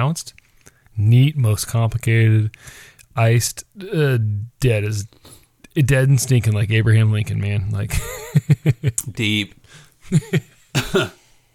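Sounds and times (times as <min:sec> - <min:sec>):
speech: 0:00.0 - 0:00.4, 0:01.0 - 0:11.2
person giving a little cough: 0:10.8 - 0:11.3.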